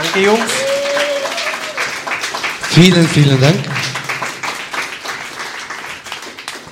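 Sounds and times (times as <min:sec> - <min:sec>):
audience applause: 0:00.0 - 0:06.7
speech: 0:00.2 - 0:00.6, 0:02.8 - 0:03.8.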